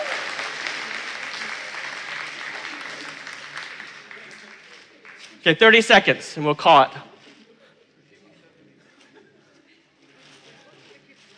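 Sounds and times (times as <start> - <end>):
group clapping and cheering: 0.0 - 5.4
speech: 5.4 - 7.1.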